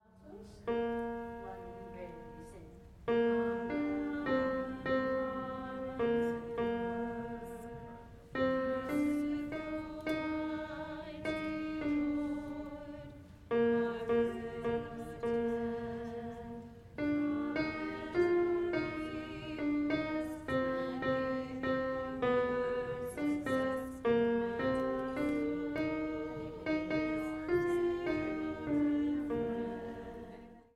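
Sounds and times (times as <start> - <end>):
alto voice singing a hymn: 0.7 - 30.7.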